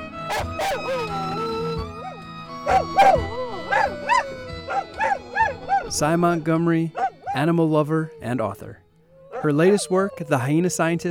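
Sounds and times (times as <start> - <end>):
car radio music and tones: 0.0 - 7.4
dog howling at radio: 0.3 - 6.1, 6.9 - 10.9
speech: 0.4 - 1.4, 2.6 - 4.0, 5.9 - 8.8, 9.4 - 11.0.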